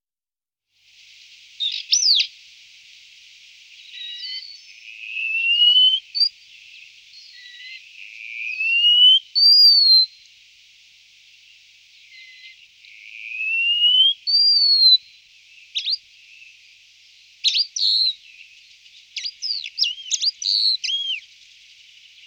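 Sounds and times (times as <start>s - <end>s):
wallcreeper whistling: 3.8s - 6.3s, 8.4s - 10.2s, 13.3s - 15.0s, 17.4s - 18.3s, 19.2s - 21.3s.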